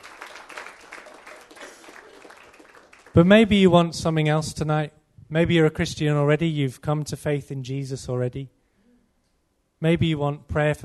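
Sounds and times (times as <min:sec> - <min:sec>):
audience applause: 0:00.0 - 0:03.2
speech: 0:03.2 - 0:08.6, 0:09.8 - 0:10.8.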